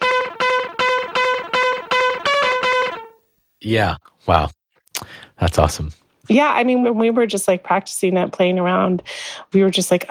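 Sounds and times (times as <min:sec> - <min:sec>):
chirpy chattery sampled notes from quick keypress: 0:00.0 - 0:03.1
speech: 0:03.6 - 0:10.1.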